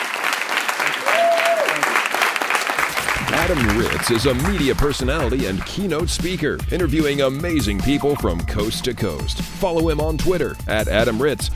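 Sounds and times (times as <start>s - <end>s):
audience applause: 0.0s - 5.8s
speech: 3.5s - 11.5s.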